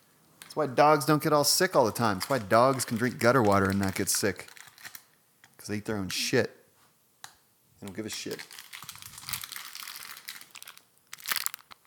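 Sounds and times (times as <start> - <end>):
speech: 0.6 - 4.6, 5.6 - 6.6, 7.8 - 8.6
snack bar wrapper crinkling: 1.7 - 5.2, 7.8 - 11.8.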